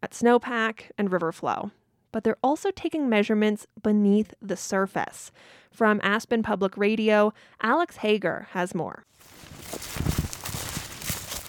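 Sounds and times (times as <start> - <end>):
speech: 0.0 - 10.0
footsteps through dense scrubby bushes in the hills above Glenwood Springs, Colorado: 9.2 - 11.4
rustling brush: 9.2 - 11.4.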